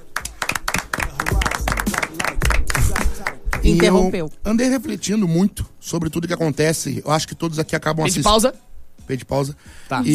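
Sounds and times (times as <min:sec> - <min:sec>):
people clapping: 0:00.0 - 0:04.1
speech: 0:03.6 - 0:10.1.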